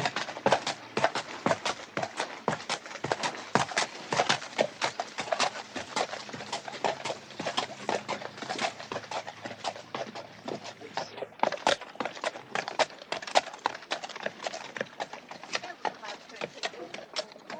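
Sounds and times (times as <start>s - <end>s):
hooves clattering: 0.0s - 17.5s.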